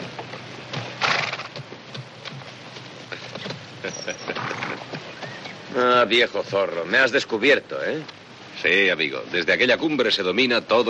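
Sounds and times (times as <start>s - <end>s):
horse galloping in a Western film scene: 0.0s - 5.8s
speech: 3.9s - 5.0s, 5.7s - 10.8s.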